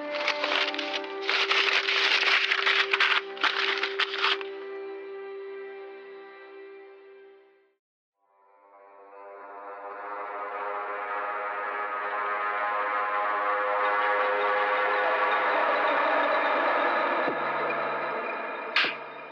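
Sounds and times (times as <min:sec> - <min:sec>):
yellowed wax-sealed paper envelope being ripped open: 0:00.0 - 0:04.5
sustained musical drone: 0:00.0 - 0:06.7, 0:09.0 - 0:19.3.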